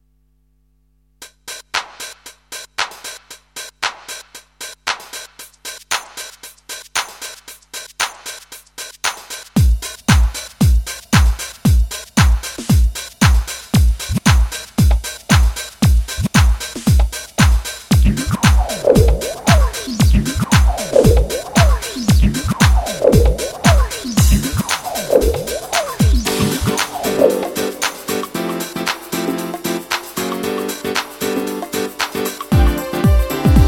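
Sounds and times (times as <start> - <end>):
swing house music: 4.9 - 33.6.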